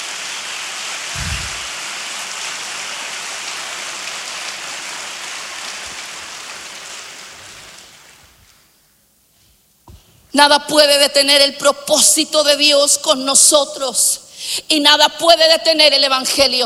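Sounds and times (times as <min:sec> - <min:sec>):
audience applause: 0:00.0 - 0:07.8
speech: 0:10.3 - 0:16.6.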